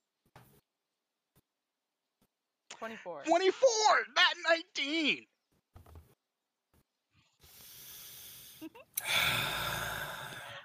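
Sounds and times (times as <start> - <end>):
speech: 2.8 - 5.3, 8.6 - 9.9
deep breaths of the Dungeon Master at a tabletop role-playing session: 7.2 - 10.6.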